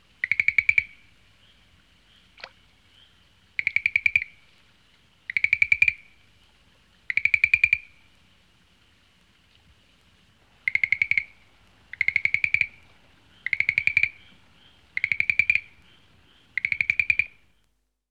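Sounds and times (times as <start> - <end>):
frog calling: 0.2 - 4.5, 5.3 - 6.2, 7.1 - 8.0, 10.5 - 17.6.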